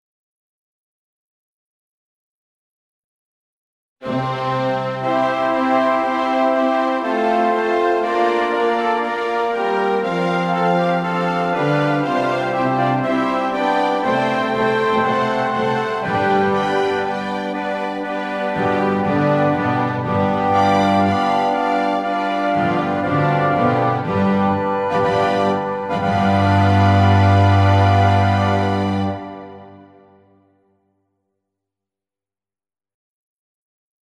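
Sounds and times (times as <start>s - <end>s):
instrumental music: 4.0s - 30.7s.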